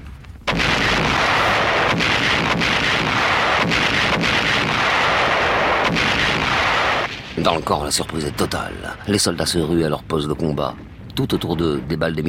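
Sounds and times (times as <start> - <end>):
artillery shells exploding on Dien Bien Phu: 0.4 - 10.2
speech: 7.4 - 12.2.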